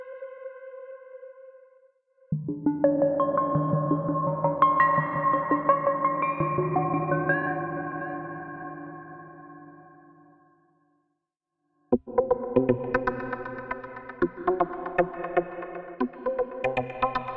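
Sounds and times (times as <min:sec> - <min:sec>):
space chillout music: 0:02.3 - 0:09.8, 0:11.9 - 0:17.3.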